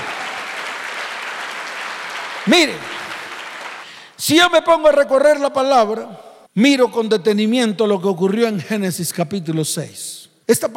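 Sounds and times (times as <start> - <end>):
audience applauding: 0.0 - 4.1
speech: 2.4 - 3.0, 4.2 - 10.7.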